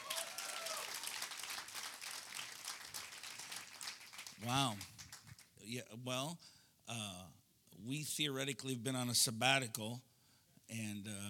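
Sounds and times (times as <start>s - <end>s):
audience hand clapping: 0.0s - 5.6s
speech: 4.4s - 4.9s, 5.6s - 10.1s, 10.7s - 11.2s.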